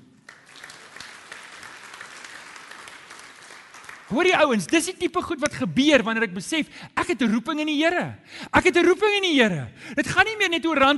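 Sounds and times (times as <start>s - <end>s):
audience applause: 0.0s - 4.5s
speech: 4.1s - 10.9s.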